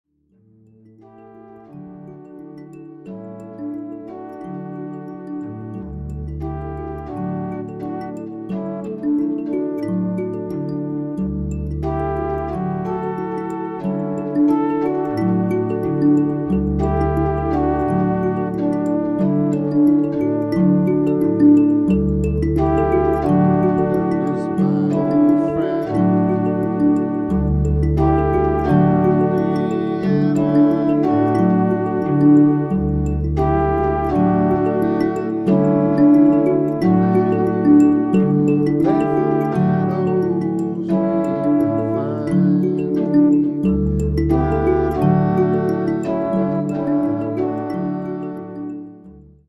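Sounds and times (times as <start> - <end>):
mbira playing microtonal just intonation music: 0.6 - 49.4
standard MIDI controller playing microtonal just intonation music: 0.8 - 48.9.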